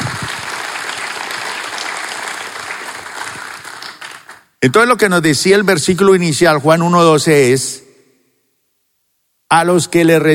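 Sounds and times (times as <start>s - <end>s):
audience applause: 0.0s - 4.5s
speech: 4.6s - 7.8s, 9.5s - 10.3s.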